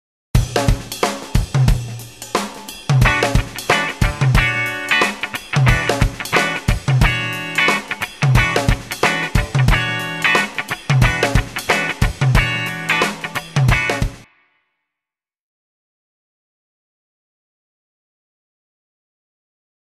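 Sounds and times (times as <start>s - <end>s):
rhythm guitar: 0.4s - 14.2s.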